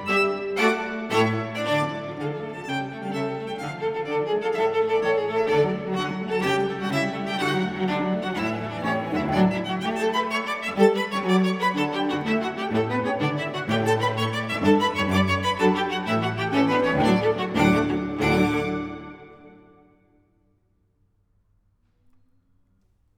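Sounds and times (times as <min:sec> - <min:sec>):
string trio of violin viola and cello playing: 0:00.0 - 0:19.8.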